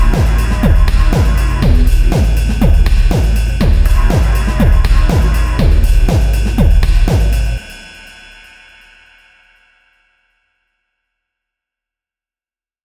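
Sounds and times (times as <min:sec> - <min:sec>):
trance music loop: 0:00.0 - 0:07.6.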